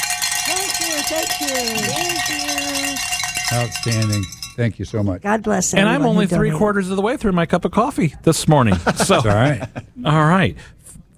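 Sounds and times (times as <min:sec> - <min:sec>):
bell ringing: 0:00.0 - 0:04.7
speech: 0:01.0 - 0:10.8
laughter: 0:08.6 - 0:10.0.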